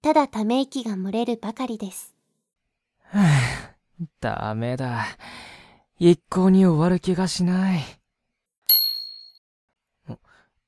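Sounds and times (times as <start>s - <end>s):
speech: 0.1s - 2.2s, 3.1s - 8.0s
small bell ringing: 8.7s - 9.4s.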